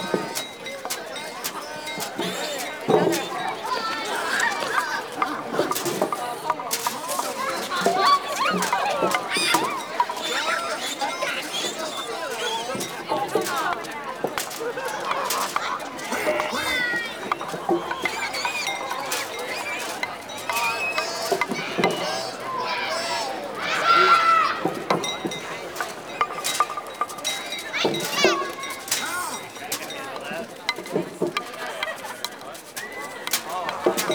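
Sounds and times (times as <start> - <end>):
laughter: 0.0 - 34.1
village exterior ambience: 0.0 - 34.1.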